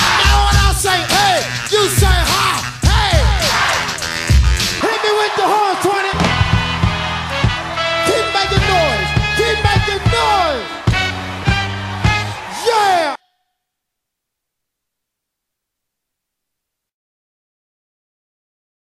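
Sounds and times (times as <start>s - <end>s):
horns: 0.0s - 13.4s.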